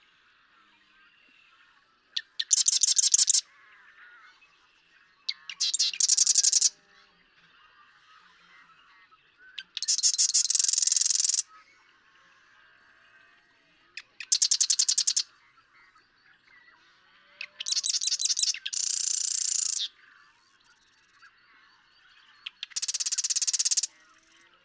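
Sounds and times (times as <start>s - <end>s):
Marsh Wren song: 2.4s - 3.4s, 5.6s - 6.7s, 9.8s - 11.4s, 14.3s - 15.2s, 17.6s - 19.9s, 22.5s - 23.9s.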